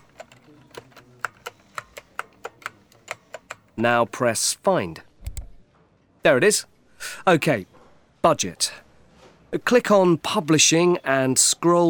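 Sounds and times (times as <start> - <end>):
computer keyboard typing: 0.0 - 3.8
speech: 3.8 - 5.1, 6.2 - 8.8, 9.5 - 11.8.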